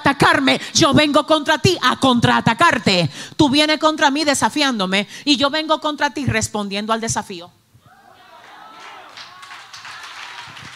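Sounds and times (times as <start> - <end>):
speech: 0.1 - 7.6
audience applause: 8.3 - 10.7.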